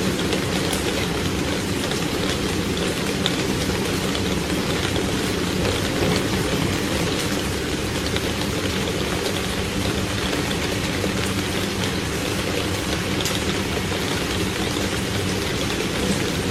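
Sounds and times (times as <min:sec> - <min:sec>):
heavy rain on a roof: 0:00.0 - 0:16.5.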